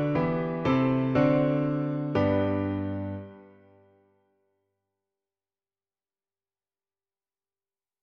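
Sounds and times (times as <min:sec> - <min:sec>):
piano version: 0:00.0 - 0:04.0.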